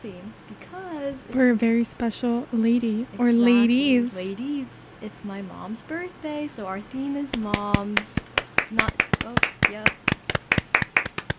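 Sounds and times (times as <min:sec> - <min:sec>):
speech: 0:00.0 - 0:10.0
hand clapping on a show: 0:07.3 - 0:11.3.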